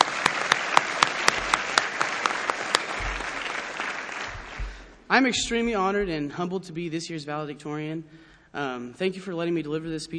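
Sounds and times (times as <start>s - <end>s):
round of applause: 0.0s - 4.9s
speech: 5.1s - 10.1s.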